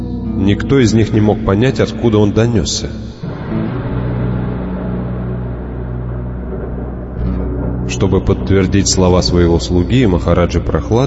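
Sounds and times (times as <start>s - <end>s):
speech: 0.4s - 3.1s, 8.0s - 11.0s
deep loud rumble of thunder: 3.2s - 10.6s.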